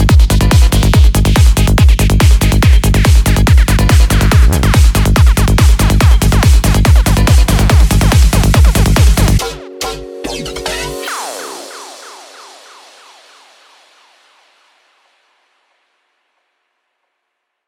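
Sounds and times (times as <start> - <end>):
car audio music: 0.0 - 13.5.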